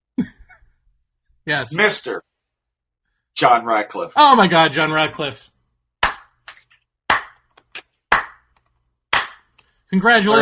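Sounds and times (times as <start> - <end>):
speech: 1.5 - 2.3, 3.4 - 5.5, 9.9 - 10.4
golf clap: 6.0 - 9.7.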